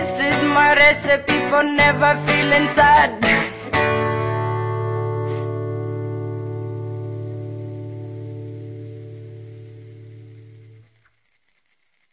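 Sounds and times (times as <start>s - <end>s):
reggae music: 0.0s - 7.8s.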